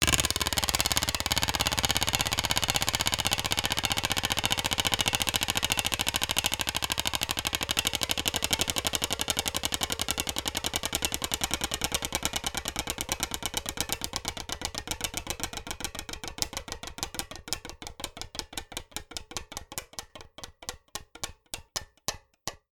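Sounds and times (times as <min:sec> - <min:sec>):
Wheel of Fortune style prize wheel spinning: 0:00.0 - 0:17.5.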